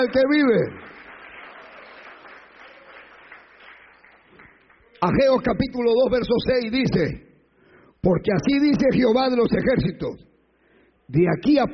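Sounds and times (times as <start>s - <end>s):
speech: 0.0s - 1.0s, 5.0s - 7.3s, 8.0s - 10.3s, 11.1s - 11.7s
church congregation clapping during a sermon to praise Christ: 0.0s - 5.6s.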